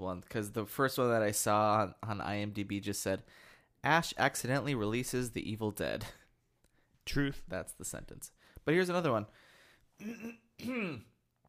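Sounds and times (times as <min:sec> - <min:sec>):
speech: 0:00.0 - 0:06.2, 0:07.1 - 0:09.4, 0:10.0 - 0:11.1
throat clearing: 0:10.0 - 0:11.2.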